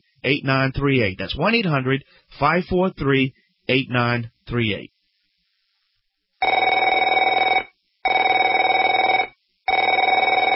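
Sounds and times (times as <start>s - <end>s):
speech: 0.2s - 4.9s
telephone ringing: 6.4s - 10.5s.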